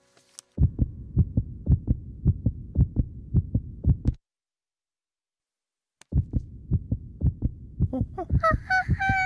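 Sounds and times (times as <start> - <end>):
heartbeat heard through a stethoscope: 0.6 - 4.2, 6.0 - 9.2.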